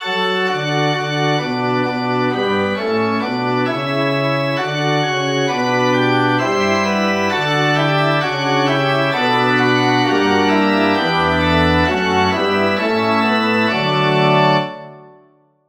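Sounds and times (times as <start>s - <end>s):
musical prelude: 0.0s - 15.3s.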